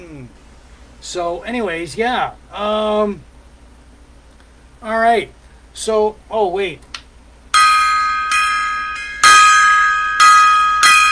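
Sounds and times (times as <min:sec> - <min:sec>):
speech: 0:01.0 - 0:03.3, 0:04.8 - 0:06.9
gong being struck: 0:07.6 - 0:11.1.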